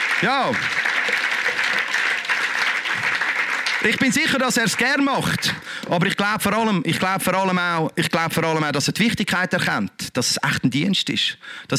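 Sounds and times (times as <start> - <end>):
audience applause: 0.0 - 5.8
speech: 0.2 - 1.2, 3.8 - 11.7.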